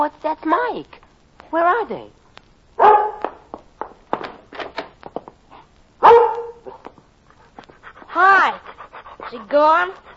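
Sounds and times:
speech: 0:00.0 - 0:02.2, 0:02.8 - 0:03.0, 0:09.3 - 0:10.1
dog barking excitedly: 0:02.8 - 0:03.2, 0:06.0 - 0:06.9.

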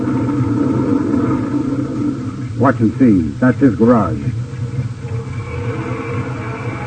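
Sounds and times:
speech: 0:00.0 - 0:00.4, 0:02.6 - 0:04.4
car engine rumbling driving out of garage: 0:00.0 - 0:06.8.

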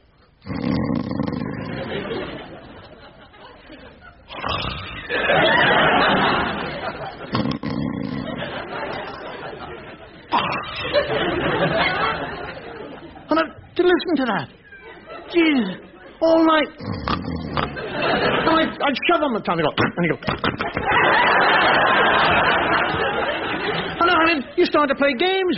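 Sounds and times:
voice imitating snoring: 0:00.4 - 0:02.1, 0:04.3 - 0:05.2, 0:07.2 - 0:08.6, 0:10.3 - 0:10.8, 0:16.8 - 0:17.9
laughter: 0:01.6 - 0:13.7, 0:14.5 - 0:16.2, 0:17.5 - 0:18.9, 0:20.0 - 0:24.6
speech: 0:14.2 - 0:14.6, 0:19.1 - 0:25.5.

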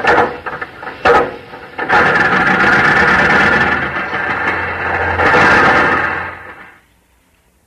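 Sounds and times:
hand-cranked Model A Ford engine starting: 0:00.0 - 0:06.8.

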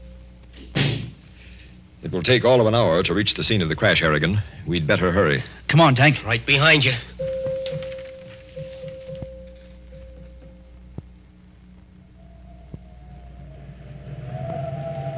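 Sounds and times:
speech: 0:02.0 - 0:07.2
wind howling on a mountain: 0:12.0 - 0:15.1.

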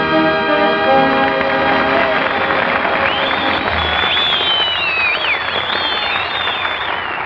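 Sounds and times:
large audience clapping and cheering: 0:00.1 - 0:07.2
shrill whistles: 0:02.9 - 0:07.2.

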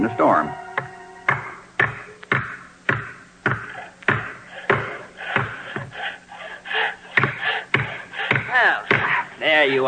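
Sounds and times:
speech: 0:00.0 - 0:00.6, 0:09.6 - 0:09.8
hammering nails into a roof: 0:01.3 - 0:06.0, 0:07.1 - 0:09.7.

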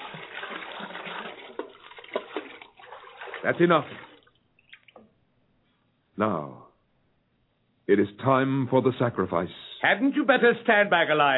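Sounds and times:
buckets of water poured over the sacrifice: 0:00.0 - 0:05.1
speech: 0:03.4 - 0:04.1, 0:06.2 - 0:06.6, 0:07.9 - 0:11.3.

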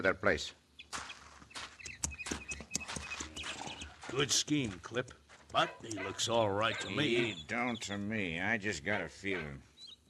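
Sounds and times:
speech: 0:00.0 - 0:01.1, 0:04.1 - 0:10.0
horse hooves clip-clopping: 0:01.0 - 0:06.2.

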